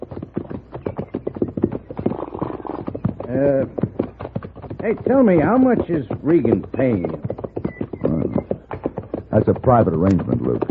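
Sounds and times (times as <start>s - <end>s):
horse hooves clip-clopping on hard ground: 0.0s - 10.6s
speech: 3.4s - 3.8s, 4.8s - 7.4s, 9.3s - 10.6s.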